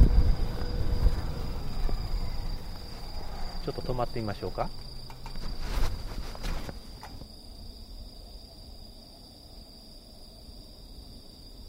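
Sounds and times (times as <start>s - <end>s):
steady high-pitched insect trill: 0.0s - 11.6s
speech: 3.7s - 4.8s
soft thumps and rustles: 5.1s - 7.3s.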